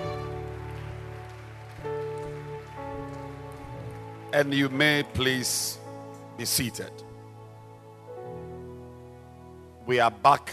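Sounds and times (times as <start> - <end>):
audience clapping hands: 0.0 - 5.9
speech: 4.3 - 5.8, 6.4 - 7.1, 9.9 - 10.5.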